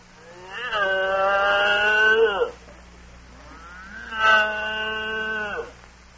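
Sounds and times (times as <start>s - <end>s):
steady low hum: 0.0s - 6.1s
cow mooing: 0.2s - 2.6s, 3.4s - 5.8s.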